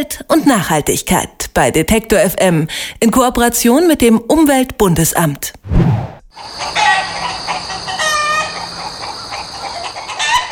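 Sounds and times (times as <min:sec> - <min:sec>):
speech: 0:00.0 - 0:06.8
dozen chickens clucking excitedly in front of the workshop: 0:06.4 - 0:10.5.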